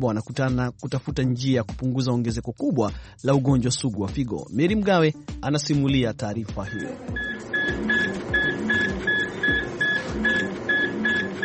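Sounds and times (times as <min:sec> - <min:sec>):
speech: 0:00.0 - 0:07.3
dialysis machine constant mechanical hum: 0:06.7 - 0:11.4
dialysis machine electronic beeps at a hemodialysis centre in Yaounde: 0:06.7 - 0:11.4.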